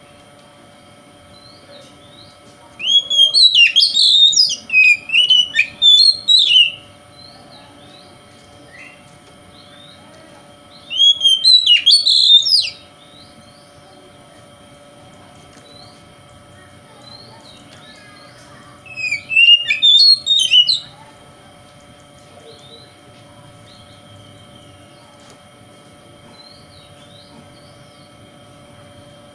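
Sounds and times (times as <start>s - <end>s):
faint electrical hum: 0.0s - 29.3s
Oriental magpie-robin whistled song: 2.8s - 7.4s, 10.7s - 13.7s, 18.8s - 21.0s.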